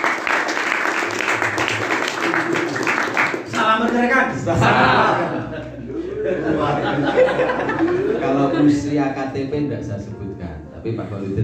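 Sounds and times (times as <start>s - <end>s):
audience applause: 0.0s - 4.1s
speech: 3.8s - 10.2s, 10.8s - 11.4s
laughter: 4.3s - 8.6s.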